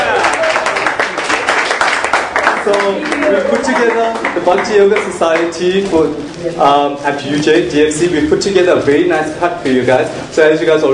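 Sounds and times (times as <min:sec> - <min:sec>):
audience applause at a university Bhakti Yoga Society cooking demo: 0:00.0 - 0:05.6
speech: 0:02.6 - 0:10.9.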